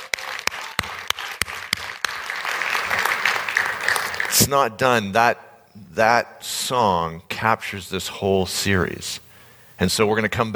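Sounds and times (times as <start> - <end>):
audience applause: 0.0 - 4.5
speech: 4.4 - 9.2, 9.8 - 10.5.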